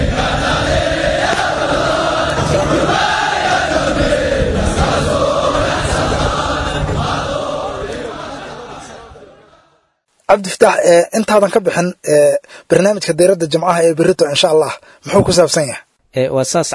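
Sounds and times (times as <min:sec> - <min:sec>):
Gorgor army soldiers shouting threats during training: 0:00.0 - 0:09.7
speech: 0:10.3 - 0:16.7.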